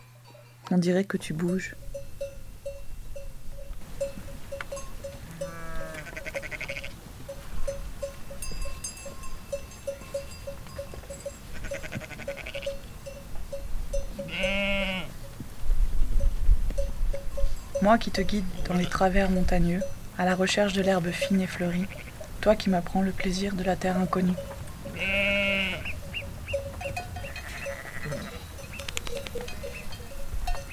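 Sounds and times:
cowbells on grazing mountain livestock clanking: 0:00.0 - 0:15.4, 0:16.1 - 0:30.7
speech: 0:00.7 - 0:01.8, 0:17.9 - 0:25.2
goats or sheep bleating: 0:04.4 - 0:07.0, 0:11.5 - 0:12.9, 0:14.2 - 0:15.2, 0:18.4 - 0:19.4, 0:20.6 - 0:22.6, 0:23.8 - 0:26.1, 0:26.8 - 0:28.7.

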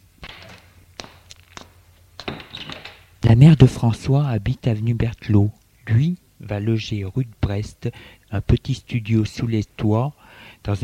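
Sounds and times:
footsteps of someone walking out: 0:00.2 - 0:03.2
front door opening: 0:02.2 - 0:03.2
speech: 0:03.3 - 0:10.8.

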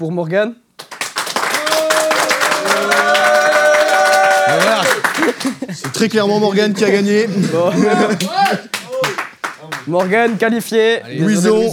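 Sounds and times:
speech: 0:00.0 - 0:00.6, 0:04.5 - 0:08.7, 0:09.6 - 0:11.7
audience clapping for a contestant: 0:00.8 - 0:06.7, 0:08.0 - 0:10.6
voices cheering and whooping: 0:01.5 - 0:05.3
laughter: 0:04.4 - 0:09.1.

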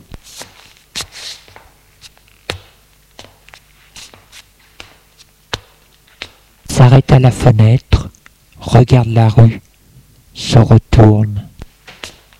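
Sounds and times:
footsteps of a woman walking across a room: 0:00.1 - 0:06.6, 0:11.6 - 0:12.3
speech: 0:06.9 - 0:08.0, 0:08.7 - 0:09.6, 0:10.4 - 0:11.5.

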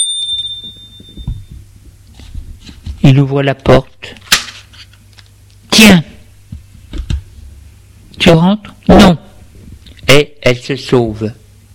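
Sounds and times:
electronic doorbell ringing: 0:00.0 - 0:01.6
speech: 0:03.0 - 0:04.2, 0:05.8 - 0:06.1, 0:08.3 - 0:09.2, 0:10.7 - 0:11.4.

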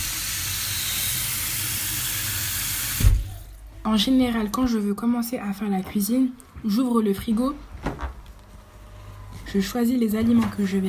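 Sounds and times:
water running from a tap: 0:00.0 - 0:03.5
speech: 0:03.9 - 0:07.7, 0:09.5 - 0:10.8.

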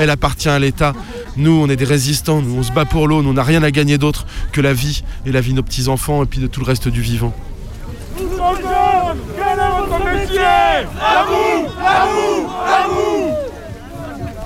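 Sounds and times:
speech: 0:00.0 - 0:07.5, 0:08.2 - 0:13.4
protest march crowd chanting: 0:08.1 - 0:14.4.

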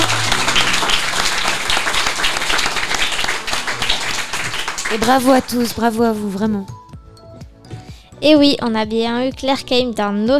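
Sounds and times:
audience applause for actress Claire Keim at a school in Bayonne: 0:00.0 - 0:06.0
speech: 0:04.9 - 0:06.8, 0:08.2 - 0:10.3.

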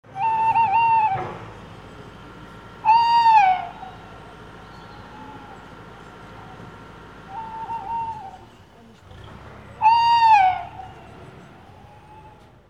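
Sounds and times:
owl hooting: 0:00.1 - 0:01.2, 0:02.8 - 0:06.7, 0:07.3 - 0:08.7, 0:09.8 - 0:12.5
low background hum: 0:00.1 - 0:12.6.

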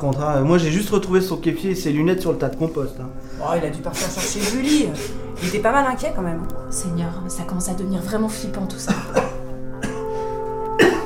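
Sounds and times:
speech: 0:00.0 - 0:09.3
cough: 0:08.9 - 0:10.1, 0:10.8 - 0:11.0.

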